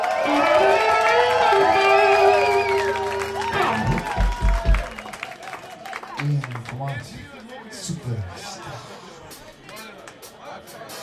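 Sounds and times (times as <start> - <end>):
audience cheering: 0.0 - 6.6
audience applause: 0.0 - 7.7.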